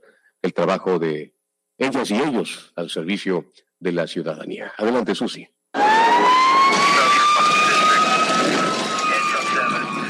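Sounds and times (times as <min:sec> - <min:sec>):
speech: 0:00.6 - 0:07.1
fire engine siren wailing: 0:05.8 - 0:10.0.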